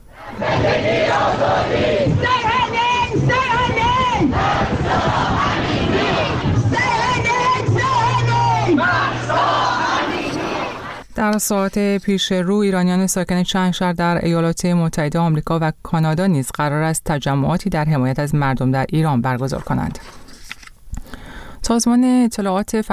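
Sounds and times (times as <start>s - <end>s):
protesters in London chanting slogans: 0.1s - 11.0s
speech: 11.2s - 20.2s, 21.6s - 22.9s.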